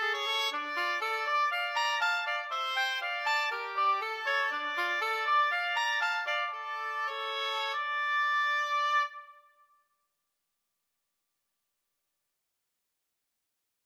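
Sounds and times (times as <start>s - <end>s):
oboe duet: 0.0s - 9.4s.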